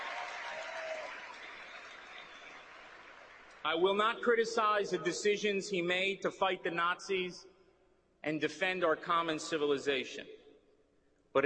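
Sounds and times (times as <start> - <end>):
audience applause: 0.0 - 3.5
speech: 3.6 - 7.5, 8.2 - 10.4.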